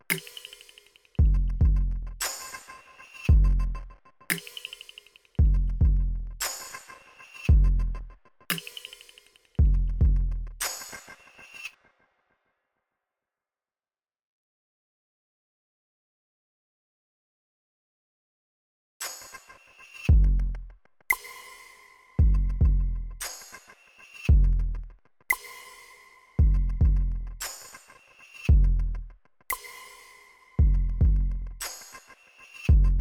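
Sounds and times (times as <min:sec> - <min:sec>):
drums and percussion: 0:00.0 - 0:11.9, 0:19.0 - 0:32.9.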